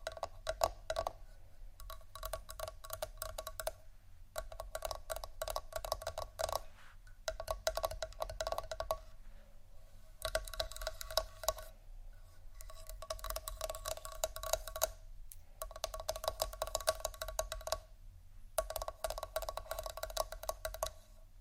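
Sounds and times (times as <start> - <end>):
scratching and tapping: 0.0 - 9.1, 10.2 - 11.8, 12.6 - 17.9, 18.6 - 21.2.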